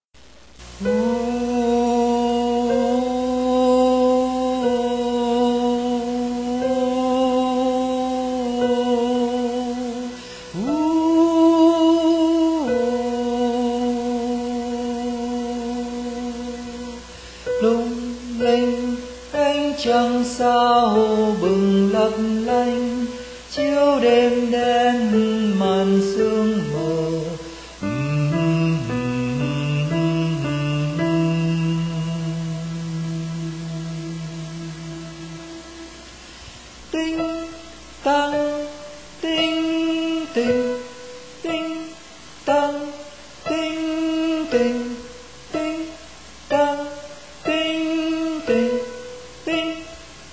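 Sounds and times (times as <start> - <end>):
soprano singing: 0.6 - 50.3.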